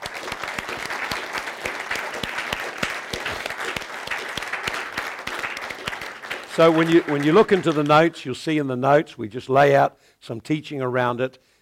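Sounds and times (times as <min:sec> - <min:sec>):
audience clapping: 0:00.0 - 0:08.4
speech: 0:06.6 - 0:11.5.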